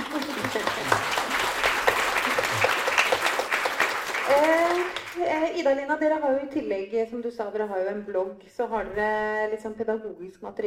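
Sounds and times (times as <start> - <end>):
audience applause: 0.0 - 5.2
speech: 5.5 - 10.6.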